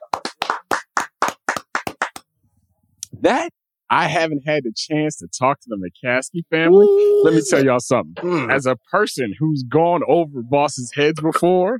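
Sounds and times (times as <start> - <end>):
clapping: 0.0 - 2.3
speech: 3.2 - 11.7.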